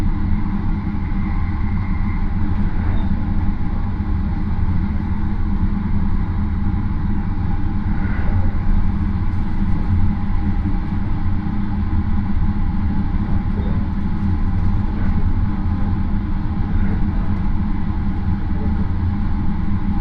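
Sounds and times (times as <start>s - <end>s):
Marine Liner rapid train rumble and rattle: 0.0s - 19.9s
faint brief train squeals: 1.0s - 3.4s.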